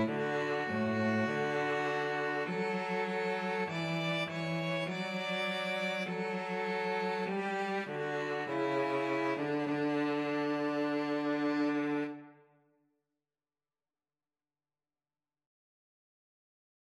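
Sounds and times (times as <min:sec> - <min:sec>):
violin and cello duet: 0:00.0 - 0:12.4.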